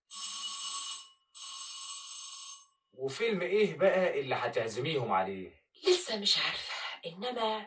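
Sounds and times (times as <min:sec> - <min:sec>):
electric bell rung to call servants: 0:00.0 - 0:02.8
speech: 0:03.0 - 0:07.6.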